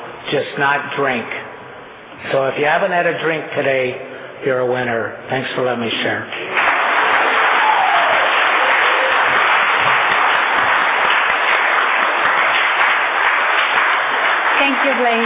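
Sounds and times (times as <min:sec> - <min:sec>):
speech: 0:00.3 - 0:01.4, 0:02.2 - 0:06.5, 0:14.9 - 0:15.2
audience applause: 0:06.4 - 0:15.2.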